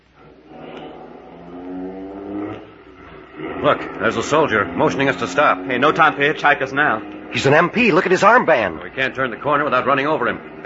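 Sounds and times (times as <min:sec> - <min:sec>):
getaway car engine revving and accelerating: 0:03.3 - 0:10.6
speech: 0:03.6 - 0:10.6.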